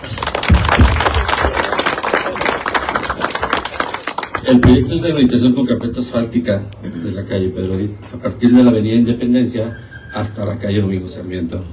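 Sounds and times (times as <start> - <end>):
audience applauding: 0.0 - 4.6
speech: 4.5 - 11.7.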